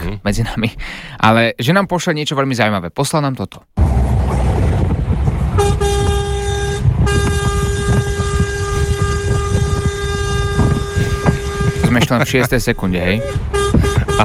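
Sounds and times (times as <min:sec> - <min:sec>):
speech: 0:00.1 - 0:03.8, 0:11.9 - 0:14.2
rumbling engine-like background: 0:03.8 - 0:14.2
large truck horn blaring: 0:05.4 - 0:14.2.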